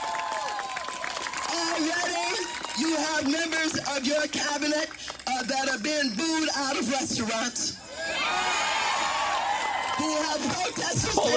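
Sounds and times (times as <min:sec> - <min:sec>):
rally crowd cheering with shouts and whoops: 0:00.0 - 0:04.0, 0:07.8 - 0:11.3
speech: 0:03.2 - 0:08.7, 0:10.0 - 0:11.3.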